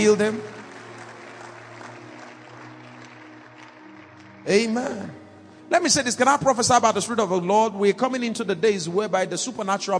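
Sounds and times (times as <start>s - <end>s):
speech: 0.0s - 0.6s, 4.4s - 9.9s
audience clapping: 0.0s - 6.0s.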